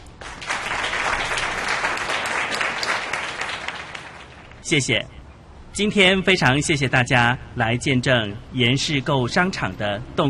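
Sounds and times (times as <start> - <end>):
audience applause: 0.0 - 4.6
speech: 4.7 - 5.2, 5.8 - 10.2.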